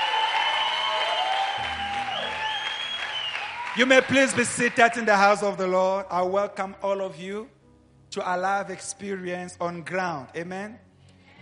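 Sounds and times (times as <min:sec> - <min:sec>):
church congregation shouting and applauding in praise during a communion service: 0:00.0 - 0:05.7
speech: 0:03.8 - 0:07.6, 0:08.2 - 0:10.8.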